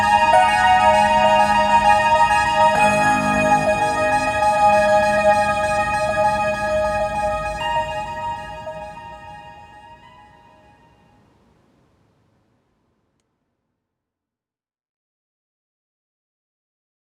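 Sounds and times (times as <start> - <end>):
laptop music: 0.0 - 10.5.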